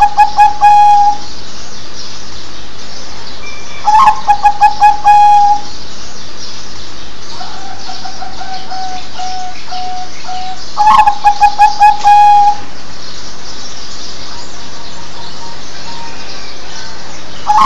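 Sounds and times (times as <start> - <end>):
zebra dove cooing: 0.0 - 1.2, 3.8 - 5.7, 7.4 - 12.6, 17.5 - 17.6.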